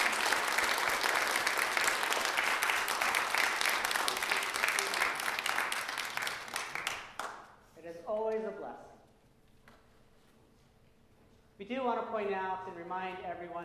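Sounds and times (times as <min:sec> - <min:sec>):
applause for the musicians: 0:00.0 - 0:07.5
speech: 0:11.7 - 0:13.6.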